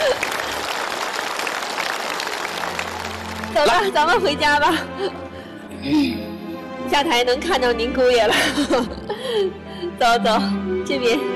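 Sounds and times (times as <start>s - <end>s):
audience applause: 0.0s - 4.4s
speech: 3.6s - 5.2s, 5.8s - 6.3s, 6.9s - 11.3s.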